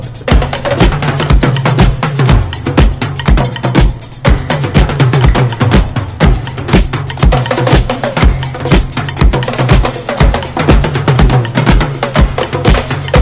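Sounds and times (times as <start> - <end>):
disco drum band with jerky rhythm: 0.0 - 13.1.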